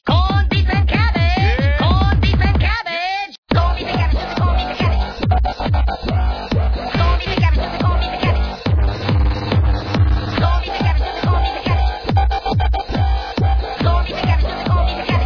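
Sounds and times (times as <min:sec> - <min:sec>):
dubstep remix: 0:00.2 - 0:02.7, 0:03.5 - 0:15.2.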